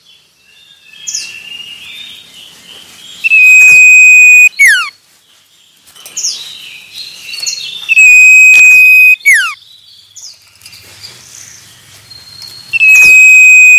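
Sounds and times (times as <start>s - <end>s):
birds chirping: 0.0s - 13.7s
common iora whistling song: 3.2s - 4.9s, 7.9s - 9.6s, 12.7s - 13.7s.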